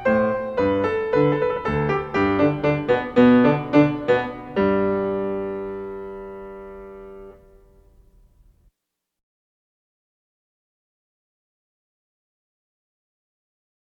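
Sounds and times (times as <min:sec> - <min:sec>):
march in G major: 0:00.0 - 0:08.1.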